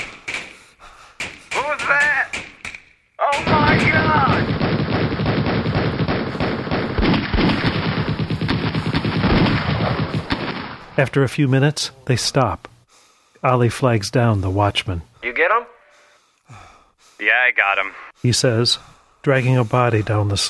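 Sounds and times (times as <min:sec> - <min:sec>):
troops firing guns: 0:00.0 - 0:11.0
troops shouting: 0:03.2 - 0:04.5
speech: 0:11.0 - 0:12.7, 0:13.4 - 0:15.7, 0:17.2 - 0:20.4.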